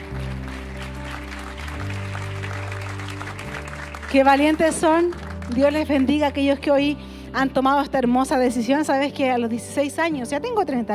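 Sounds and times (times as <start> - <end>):
audience applauding: 0.0 - 6.2
speech: 4.1 - 10.9.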